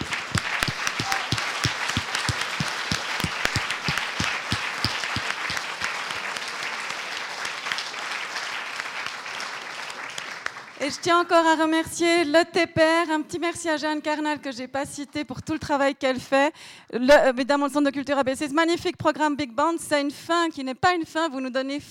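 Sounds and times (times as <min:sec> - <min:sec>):
audience applause: 0:00.0 - 0:10.8
speech: 0:11.0 - 0:21.9.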